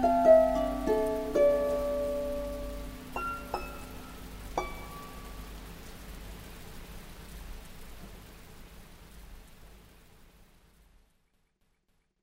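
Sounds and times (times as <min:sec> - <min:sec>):
Celtic harp: 0:00.0 - 0:05.3.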